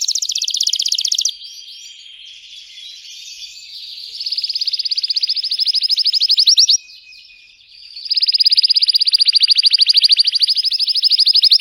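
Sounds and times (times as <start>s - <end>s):
canary song: 0.0s - 1.4s, 4.2s - 6.8s, 8.0s - 11.5s.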